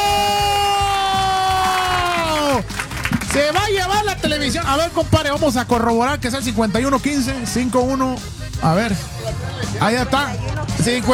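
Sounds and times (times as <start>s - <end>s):
audience applauding and cheering: 0.0s - 3.8s
speech: 3.4s - 11.1s.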